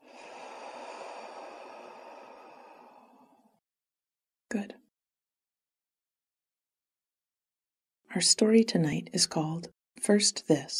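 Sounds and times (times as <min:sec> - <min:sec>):
person breathing in and out: 0:00.0 - 0:03.6
speech: 0:04.5 - 0:04.8, 0:08.1 - 0:10.7.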